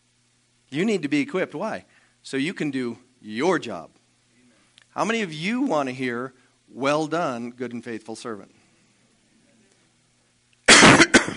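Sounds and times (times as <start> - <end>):
speech: 0.7 - 4.0, 5.0 - 8.6
person clearing throat: 10.7 - 11.3
person coughing: 10.7 - 11.3.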